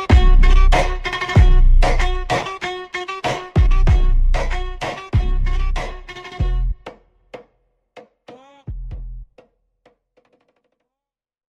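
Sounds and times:
super slowed funk music: 0.0 - 6.8.

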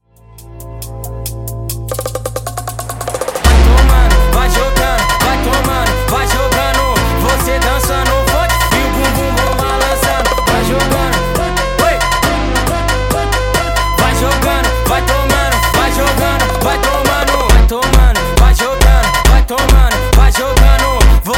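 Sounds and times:
sped up funk music: 0.2 - 21.3.

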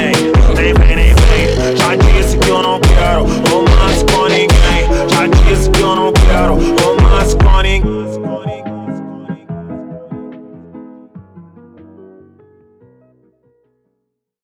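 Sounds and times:
slowed brega music: 0.0 - 11.0.

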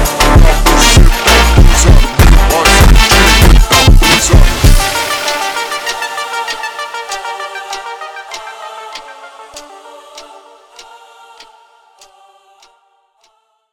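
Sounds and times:
slowed funk music: 0.0 - 9.7.

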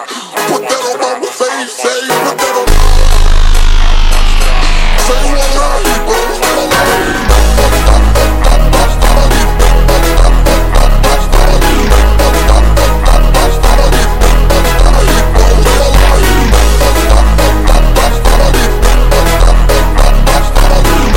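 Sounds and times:
super slowed funk music: 0.3 - 21.1.

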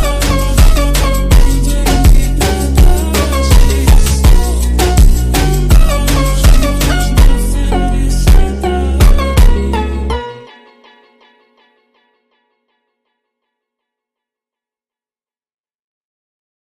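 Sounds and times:
ultra slowed funk music: 0.0 - 11.4.

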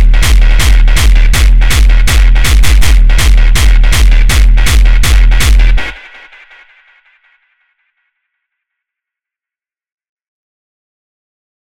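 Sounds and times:
funk music: 0.0 - 6.0.

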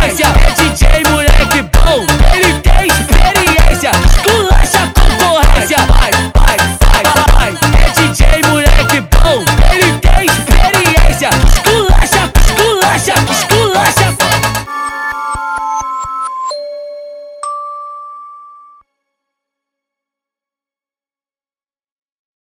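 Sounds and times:
funk music: 0.0 - 16.1.

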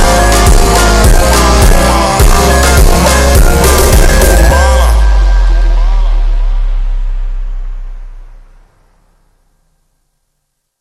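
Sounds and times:
super slowed funk music: 0.0 - 8.6.

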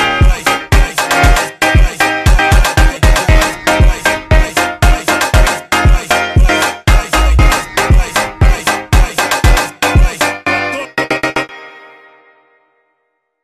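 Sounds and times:
slowed funk woodwind music: 0.0 - 10.2.

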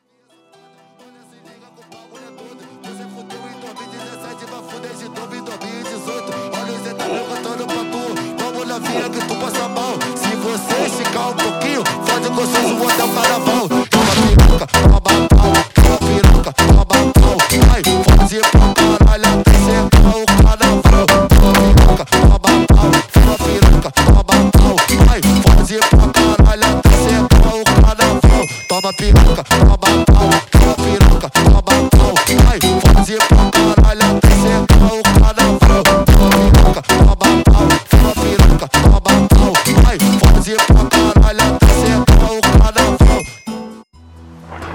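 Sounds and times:
funk music: 4.4 - 43.8.

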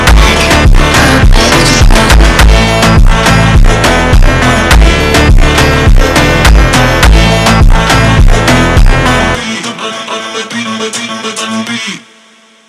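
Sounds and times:
slowed funk music: 0.0 - 9.7.

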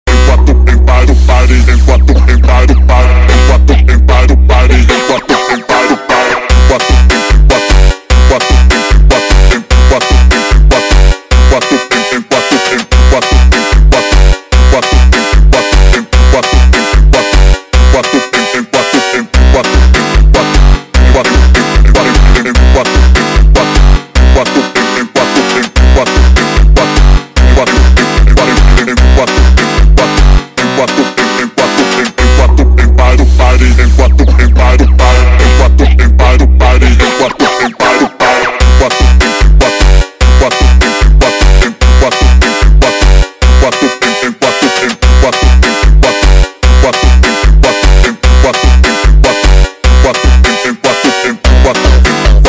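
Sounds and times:
sped-up phonk music: 0.1 - 52.4.

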